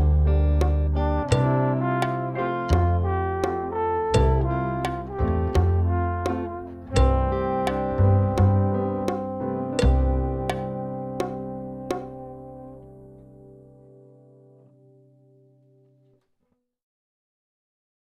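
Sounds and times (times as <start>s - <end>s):
drum kit backing track: 0.0s - 12.6s.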